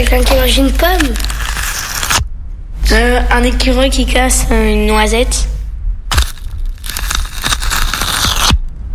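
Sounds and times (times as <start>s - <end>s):
speech: 0.0s - 1.4s, 2.9s - 5.6s
velcro strips being ripped apart: 0.7s - 2.2s, 6.1s - 8.6s.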